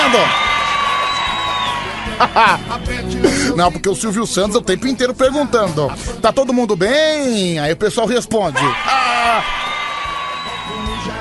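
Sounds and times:
recorded studio audience cheering and whooping: 0:00.0 - 0:03.2, 0:08.5 - 0:11.2
speech: 0:00.1 - 0:00.4, 0:02.1 - 0:09.7
laughter: 0:01.6 - 0:03.7.

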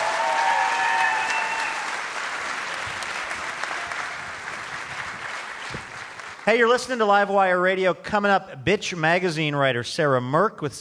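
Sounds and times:
audience applause: 0:00.0 - 0:06.5
speech: 0:06.4 - 0:10.7.

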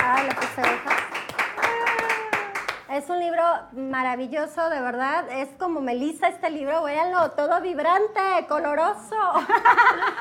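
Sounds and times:
audience applause: 0:00.0 - 0:02.8
speech: 0:00.6 - 0:01.0, 0:03.0 - 0:10.1
laughter: 0:09.4 - 0:10.1.

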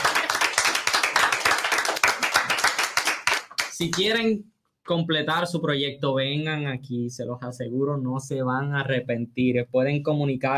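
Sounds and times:
audience applause: 0:00.0 - 0:03.8
speech: 0:03.8 - 0:10.5.

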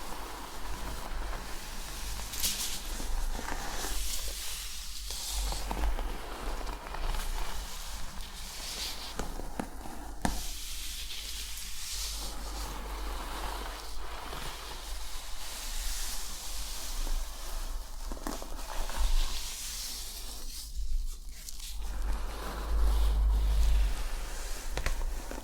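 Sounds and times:
scalp scratching: 0:00.0 - 0:16.5, 0:18.2 - 0:25.4
constant low hum: 0:21.8 - 0:25.4.

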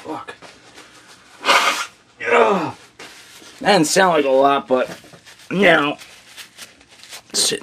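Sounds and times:
person blowing their nose: 0:01.3 - 0:02.0
speech: 0:03.6 - 0:06.1, 0:07.4 - 0:07.6.

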